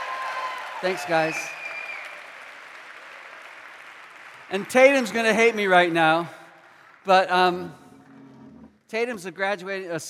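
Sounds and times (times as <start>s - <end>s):
audience applauding graduating seniors: 0.0s - 7.7s
speech: 0.8s - 1.6s, 4.5s - 6.4s, 7.0s - 7.8s, 8.9s - 10.0s.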